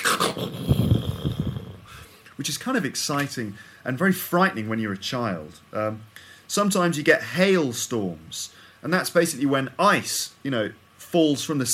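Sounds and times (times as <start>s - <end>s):
voice imitating rumbling thunder: 0.0s - 2.0s
speech: 2.4s - 11.7s.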